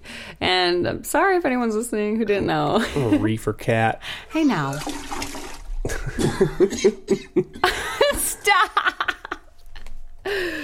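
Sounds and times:
speech: 0.4 - 5.4, 6.2 - 9.1
harsh coughing fit: 5.9 - 7.6.

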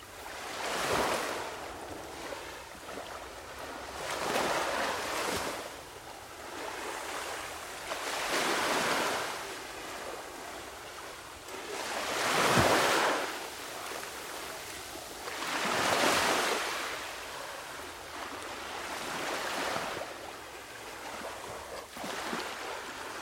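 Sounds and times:
waves washing onto a sandy beach: 0.0 - 23.1.

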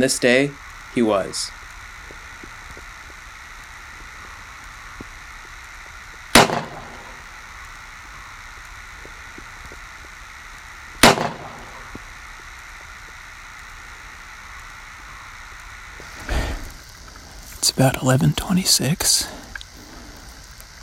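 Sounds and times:
speech: 0.0 - 1.6, 17.8 - 19.4
faint steady hiss: 0.0 - 20.8
gunshots while deer hunting in woods: 6.3 - 7.2, 11.0 - 11.9.

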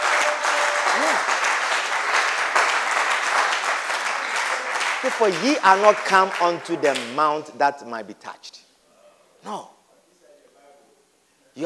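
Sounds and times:
crowd clapping: 0.0 - 7.4
speech: 5.0 - 8.5, 9.4 - 9.8.

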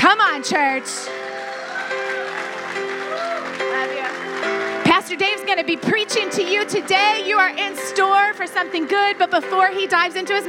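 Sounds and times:
speech: 0.1 - 2.0, 5.0 - 10.4
audience applause: 1.1 - 5.8.

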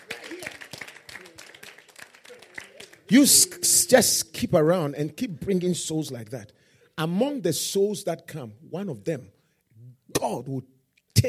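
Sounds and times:
crowd clapping: 0.0 - 3.6
speech: 3.1 - 9.4, 10.2 - 11.2.

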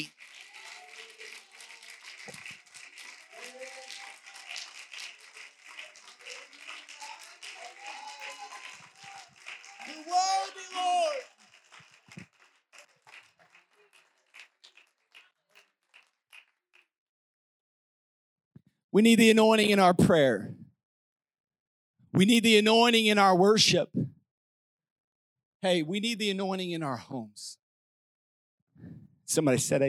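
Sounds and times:
audience clapping hands: 0.0 - 16.9
speech: 19.0 - 20.6, 22.2 - 24.0, 25.6 - 27.6, 29.3 - 29.8.

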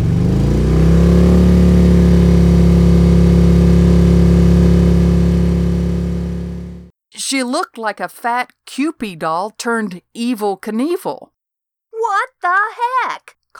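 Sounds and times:
motorbike engine roaring: 0.0 - 6.9
speech: 7.4 - 11.3, 12.0 - 13.5.

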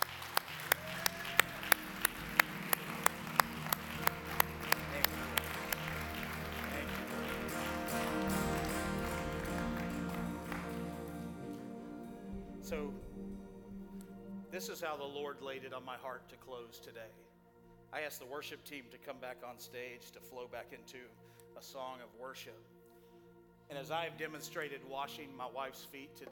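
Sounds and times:
audience clapping hands in praise: 0.0 - 12.9
speech: 12.7 - 13.0, 14.6 - 17.2, 17.9 - 22.7, 23.7 - 26.3.

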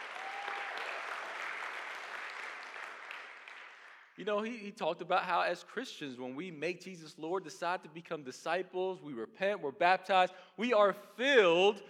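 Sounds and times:
audience applause: 0.0 - 4.2
speech: 4.2 - 11.8.

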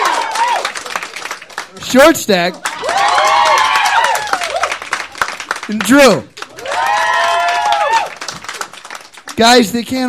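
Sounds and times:
audience clapping: 0.0 - 10.0
speech: 1.8 - 3.0, 5.7 - 6.4, 9.4 - 10.0
loud sustained cheer or whoop: 2.8 - 4.8, 6.6 - 8.2.

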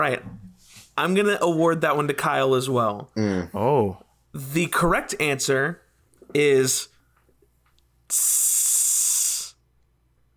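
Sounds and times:
speech: 0.0 - 0.3, 1.0 - 6.9, 8.1 - 8.8
sharp hiss: 8.1 - 9.6.

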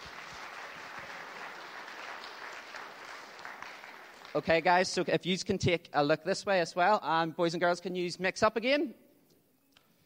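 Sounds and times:
crowd applauding: 0.0 - 4.8
speech: 4.4 - 9.0.

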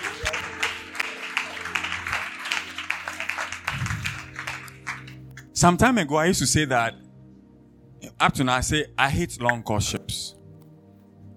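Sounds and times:
audience applause for a question during a talk on courtship: 0.0 - 5.2
speech: 5.6 - 7.0, 8.2 - 10.2.

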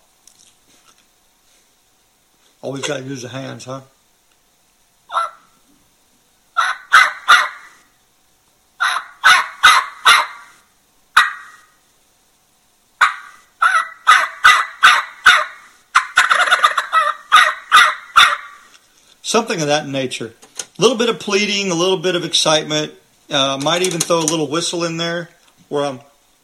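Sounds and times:
speech: 2.6 - 4.0, 19.3 - 26.1
hunter's turkey call imitating a jake yelp: 5.1 - 5.6, 6.6 - 7.9, 8.8 - 10.6, 11.2 - 11.8, 13.0 - 18.7.

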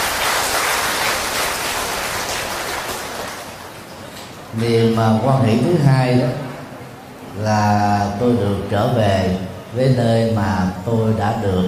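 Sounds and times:
crowd applause: 0.0 - 4.0
speech: 4.6 - 6.4, 7.4 - 11.6.

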